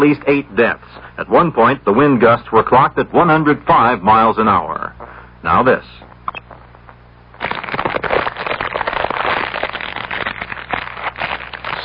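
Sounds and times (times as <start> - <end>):
speech: 0.0 - 6.1
fire crackling and popping: 6.6 - 11.8.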